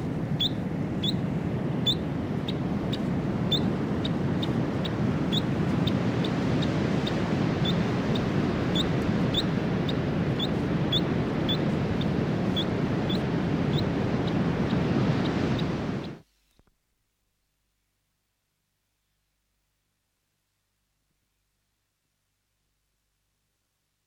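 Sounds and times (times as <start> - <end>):
New Zealand dotterel giving clipped high chirps: 0.4 - 16.2.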